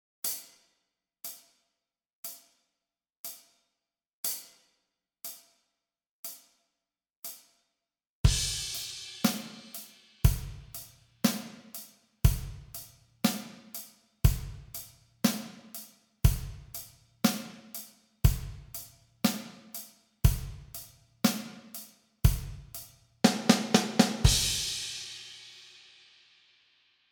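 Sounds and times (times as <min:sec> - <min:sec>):
practice track music at 60 bpm: 0:08.3 - 0:25.7.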